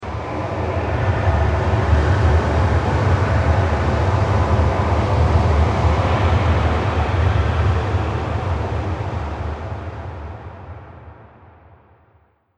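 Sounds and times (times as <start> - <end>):
scary underground soundscape: 0.0 - 9.8.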